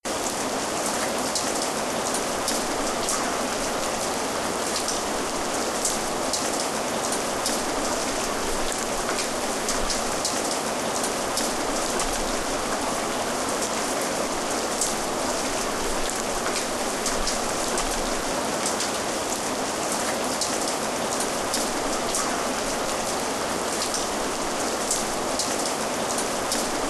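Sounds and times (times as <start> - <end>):
rain: 0.0 - 26.8.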